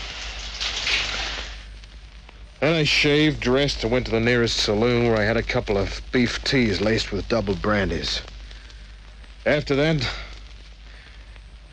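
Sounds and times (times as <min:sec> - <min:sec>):
shower water running: 0:00.0 - 0:01.7
speech: 0:02.6 - 0:08.3, 0:09.4 - 0:10.2.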